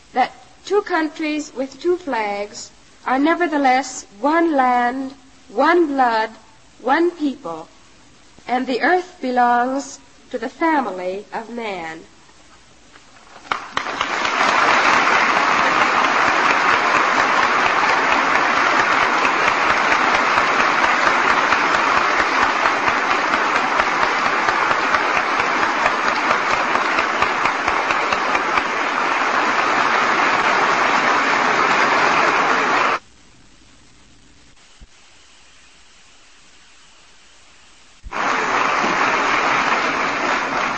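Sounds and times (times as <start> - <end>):
speech: 0.1 - 7.7, 8.5 - 12.1
large audience applauding: 13.4 - 33.0, 38.1 - 40.7.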